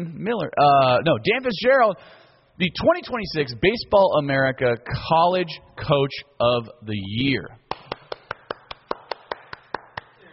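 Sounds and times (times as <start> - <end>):
speech: 0.0 - 7.6
applause button hand claps sound effect: 7.7 - 10.2.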